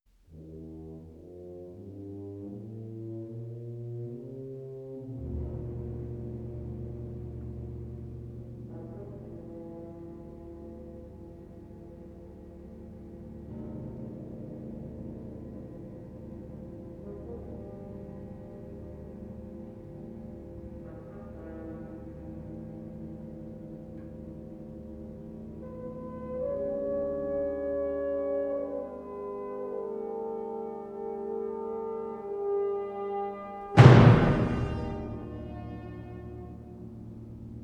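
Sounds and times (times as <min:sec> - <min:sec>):
symphony: 0:00.2 - 0:37.6.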